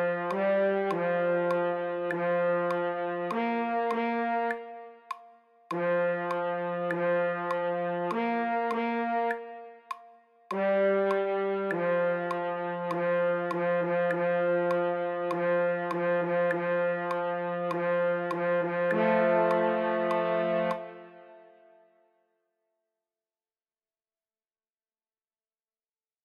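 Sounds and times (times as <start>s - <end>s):
French horn fanfare: 0.0s - 4.9s, 5.7s - 9.8s, 10.6s - 21.8s.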